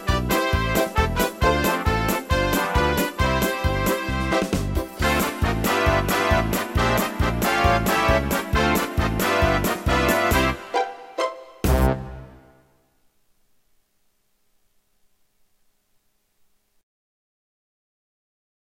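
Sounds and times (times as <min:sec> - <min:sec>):
instrumental polka music: 0:00.0 - 0:12.8.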